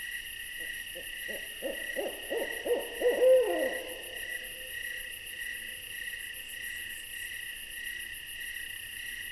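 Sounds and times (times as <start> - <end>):
insects trilling: 0.2 - 9.2
owl hooting: 0.6 - 5.1.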